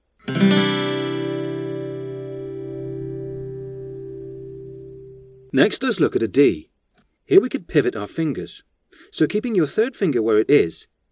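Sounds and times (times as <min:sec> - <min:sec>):
acoustic guitar strumming a C add 9 open chord: 0:00.2 - 0:05.6
speech: 0:05.5 - 0:06.7, 0:07.3 - 0:11.0.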